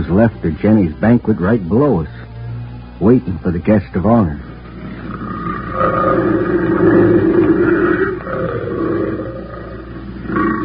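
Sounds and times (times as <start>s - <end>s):
speech: 0.1s - 2.2s, 3.0s - 4.5s, 5.8s - 9.0s
female big cat roaring and grunting on a trail: 4.7s - 10.6s.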